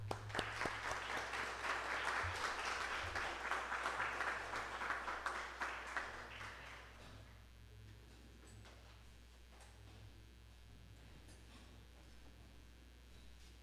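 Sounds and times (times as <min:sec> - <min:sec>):
audience applause: 0:00.0 - 0:07.1.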